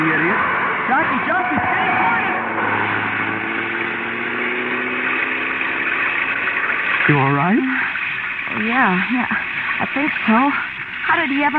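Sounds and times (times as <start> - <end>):
bus speeding past on a wet road: 0.0 - 7.8
speech: 7.1 - 7.9, 8.5 - 11.5.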